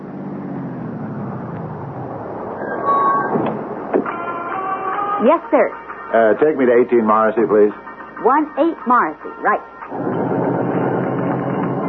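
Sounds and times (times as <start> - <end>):
taxi engine rumble: 0.0 - 5.2, 9.9 - 11.8
speech: 5.2 - 10.1.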